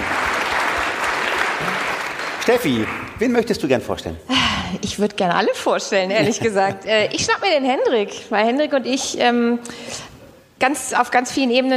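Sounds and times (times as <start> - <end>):
audience applause: 0.0 - 3.2
speech: 2.5 - 11.7
laughter: 6.1 - 7.3.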